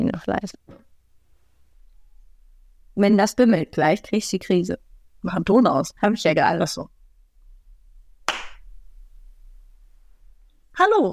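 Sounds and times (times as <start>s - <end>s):
speech: 0.1s - 0.7s, 3.0s - 7.0s, 10.8s - 11.1s
hand clap: 8.3s - 8.6s.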